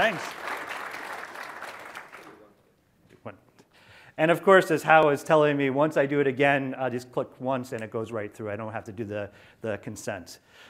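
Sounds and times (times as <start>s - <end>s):
speech: 0.0s - 0.4s, 3.2s - 3.5s, 4.2s - 10.6s
audience applause: 0.0s - 2.4s.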